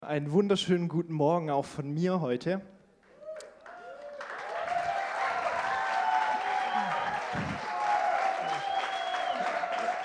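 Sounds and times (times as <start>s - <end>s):
speech: 0.1s - 2.7s
audience applause: 3.4s - 10.0s.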